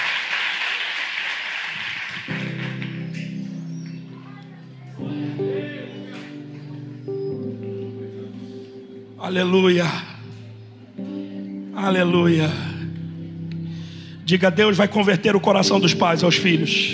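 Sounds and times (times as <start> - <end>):
audience applauding: 0.0 - 4.5
sustained keyboard chords: 2.2 - 16.9
speech: 9.3 - 10.1, 11.8 - 12.7, 14.3 - 16.9.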